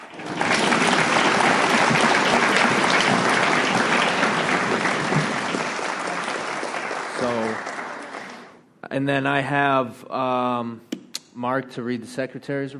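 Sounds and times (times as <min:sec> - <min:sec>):
crowd applause: 0:00.0 - 0:08.6
speech: 0:09.0 - 0:12.7.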